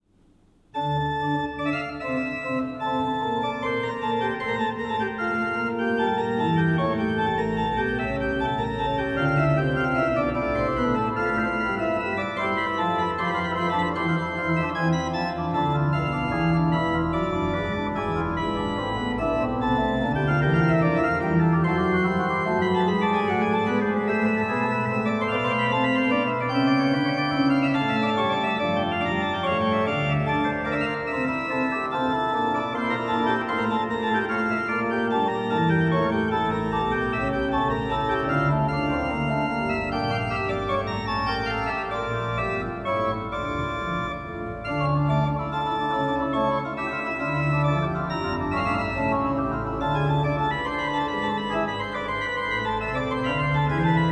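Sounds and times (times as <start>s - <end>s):
baroque trio sonata on a great organ: 0.2s - 54.1s.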